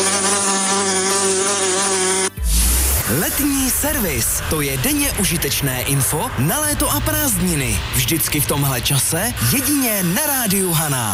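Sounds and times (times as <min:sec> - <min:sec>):
wasp buzzing: 0:00.0 - 0:05.1
speech: 0:03.3 - 0:11.1.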